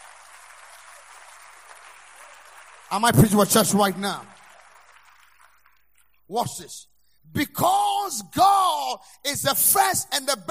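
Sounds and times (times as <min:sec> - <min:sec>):
crowd clapping steadily in a large room: 0:00.0 - 0:06.3
speech: 0:02.9 - 0:04.3, 0:06.3 - 0:10.5.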